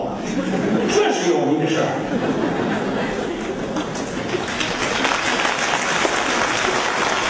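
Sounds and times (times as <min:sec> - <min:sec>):
laughter: 0:00.2 - 0:07.2
speech: 0:01.2 - 0:02.7
crowd applauding: 0:03.8 - 0:07.2.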